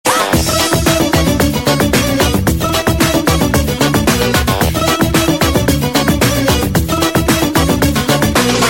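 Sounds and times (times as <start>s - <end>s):
Arabic music: 0.4s - 8.6s.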